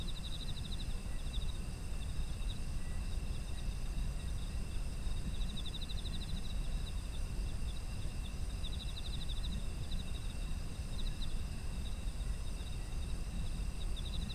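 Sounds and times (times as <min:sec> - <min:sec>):
insects chirping: 0:00.0 - 0:14.3.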